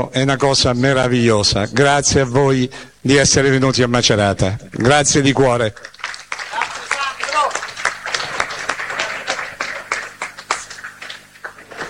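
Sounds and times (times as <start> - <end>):
speech: 0.0 - 5.9
stadium crowd applause: 5.8 - 11.8.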